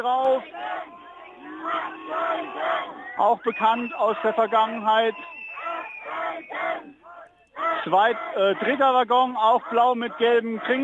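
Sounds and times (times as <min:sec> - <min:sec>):
speech: 0:00.0 - 0:05.4, 0:07.6 - 0:10.8
protest crowd shouting: 0:00.0 - 0:10.8.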